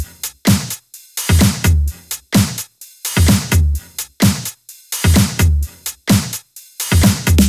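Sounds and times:
drum loops: 0:00.0 - 0:07.4.

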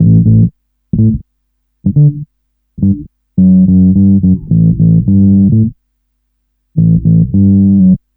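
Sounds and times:
roll bass sound: 0:00.0 - 0:01.2, 0:01.9 - 0:02.2, 0:02.8 - 0:05.7, 0:06.8 - 0:08.0.

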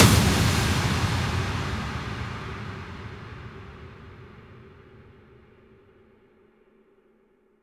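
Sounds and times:
impact sound effects: 0:00.0 - 0:05.4.

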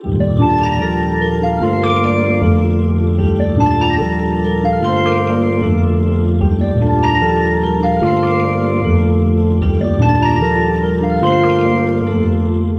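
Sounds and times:
synth loop with piano grains in G minor: 0:00.0 - 0:12.7.

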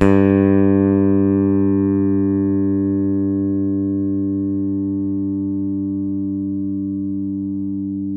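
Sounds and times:
open G2 bass string: 0:00.0 - 0:08.1.

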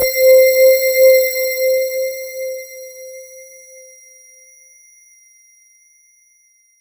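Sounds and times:
Roland JV 2080 jungle brass synth note C4: 0:00.0 - 0:03.5.

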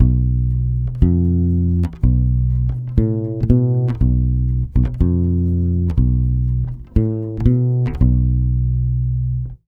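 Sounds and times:
Brazilian bossa bass in B diminished: 0:00.0 - 0:09.6.

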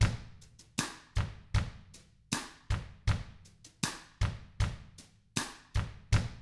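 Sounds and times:
country drums: 0:00.0 - 0:06.3.

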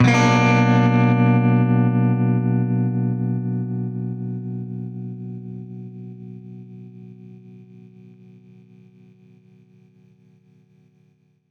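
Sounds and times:
baritone guitar B minor major seventh chord: 0:00.0 - 0:06.5.

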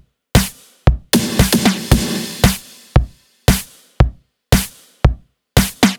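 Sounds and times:
beat: 0:00.4 - 0:04.8, 0:05.6 - 0:05.9.

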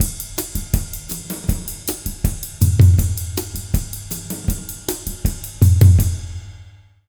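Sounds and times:
latin jazz drum loop: 0:00.0 - 0:06.6.

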